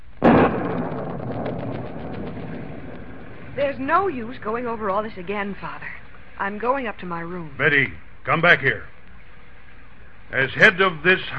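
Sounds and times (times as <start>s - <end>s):
thunderclap and rolling rumble from a storm outside: 0.0s - 6.0s
speech: 3.6s - 8.9s, 10.3s - 11.3s.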